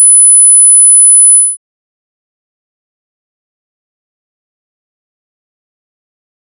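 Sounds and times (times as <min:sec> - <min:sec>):
10 Hz frequency modulated tone: 0:00.2 - 0:01.6.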